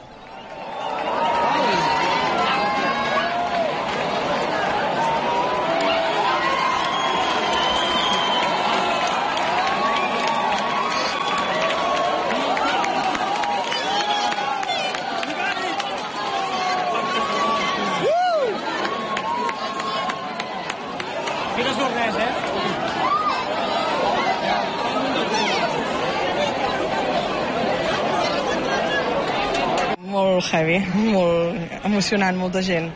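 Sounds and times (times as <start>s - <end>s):
crowd whistling: 0.0s - 3.7s, 5.0s - 20.5s
crowd applauding: 0.0s - 30.0s
speech: 30.5s - 32.9s.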